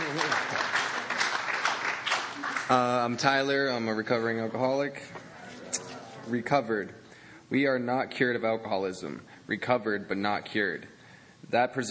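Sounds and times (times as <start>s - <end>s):
group clapping: 0.0s - 3.6s
speech: 2.7s - 5.2s, 6.3s - 11.8s
murmuring voices: 4.0s - 6.6s.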